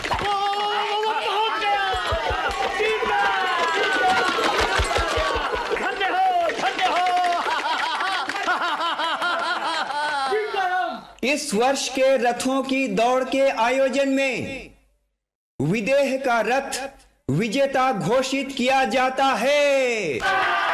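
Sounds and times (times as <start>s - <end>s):
crowd voices at a chariot race: 0.2s - 7.6s
laughter: 6.9s - 10.6s
speech: 11.4s - 14.7s, 15.6s - 20.6s.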